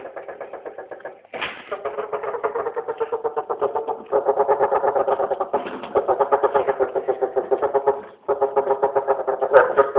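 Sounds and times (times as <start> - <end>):
East Asian bullfrogs calling in dense pulsed bursts: 0.1 - 9.9.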